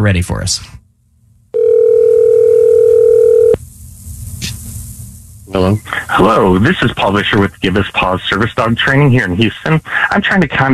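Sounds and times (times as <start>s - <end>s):
speech: 0.0s - 0.8s, 5.5s - 10.7s
telephone dial tone: 1.6s - 3.6s
faint telephone line hiss: 3.5s - 10.7s.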